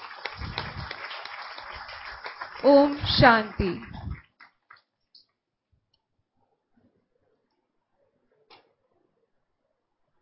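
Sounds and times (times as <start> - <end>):
audience applause welcoming a guest speaker: 0.0 - 4.7
speech: 2.6 - 3.9.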